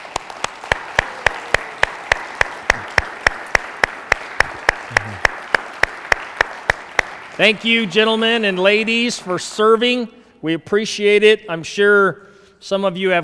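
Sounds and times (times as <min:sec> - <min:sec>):
audience applause: 0:00.0 - 0:09.4
speech: 0:07.4 - 0:13.2.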